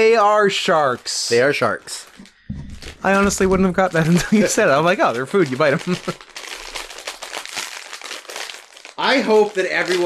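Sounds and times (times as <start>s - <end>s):
speech: 0.0s - 2.3s, 3.0s - 6.3s, 9.0s - 10.0s
snack package plastic wrapper being ripped open: 1.9s - 10.0s.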